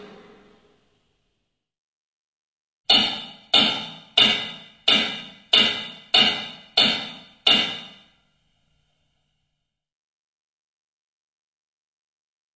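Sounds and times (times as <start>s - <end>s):
room acoustics strike on a plate: 0.0s - 0.6s, 2.9s - 8.0s.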